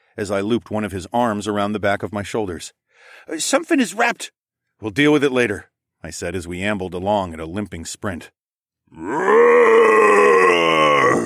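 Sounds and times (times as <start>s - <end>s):
speech: 0.2s - 10.4s
large beast roaring: 8.9s - 11.2s.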